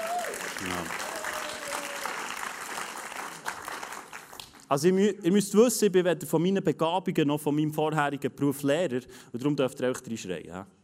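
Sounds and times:
crowd applause: 0:00.0 - 0:04.7
speech: 0:00.6 - 0:01.0, 0:04.7 - 0:10.8.

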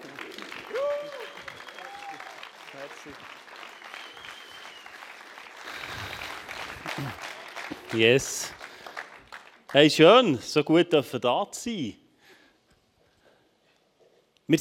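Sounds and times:
audience applause, standing ovation: 0:00.0 - 0:10.0
speech: 0:03.0 - 0:03.4, 0:07.0 - 0:07.3, 0:07.9 - 0:08.6, 0:09.7 - 0:12.0.

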